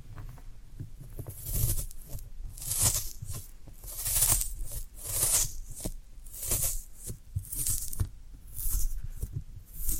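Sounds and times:
brief scratchy ticks: 1.2s - 9.9s
floral foam squeezed and crushed: 1.3s - 9.9s.

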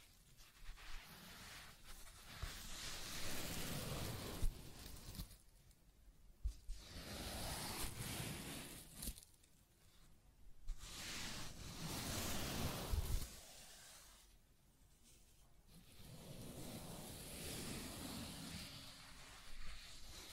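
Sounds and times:
scratching and tracing in long rough strokes: 0.0s - 5.3s, 6.7s - 9.2s, 10.7s - 14.3s, 15.8s - 20.3s.

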